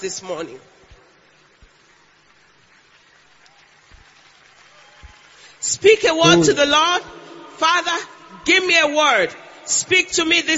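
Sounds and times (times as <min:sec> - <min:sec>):
speech: 0:00.0 - 0:00.8, 0:05.6 - 0:10.5
crowd of people clapping their hands: 0:01.8 - 0:06.5.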